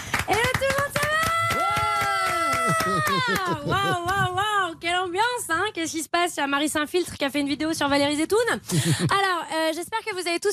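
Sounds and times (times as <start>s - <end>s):
audience applause: 0.0s - 4.2s
laughter: 2.5s - 4.3s
speech: 2.9s - 10.5s.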